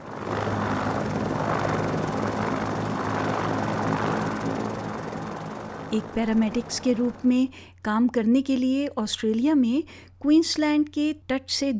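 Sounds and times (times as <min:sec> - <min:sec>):
rescue and patient transport helicopter flying in the Torres Strait off Queensland: 0:00.0 - 0:08.9
speech: 0:05.9 - 0:11.7.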